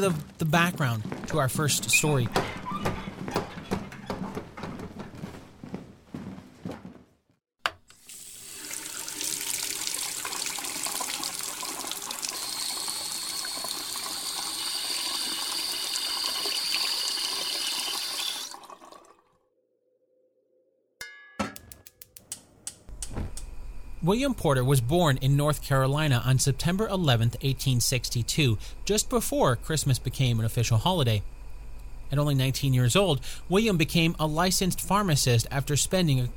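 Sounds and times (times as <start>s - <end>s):
speech: 0.0s - 3.0s, 24.1s - 31.4s, 32.1s - 36.3s
water running from a tap into a kettle: 7.7s - 19.3s.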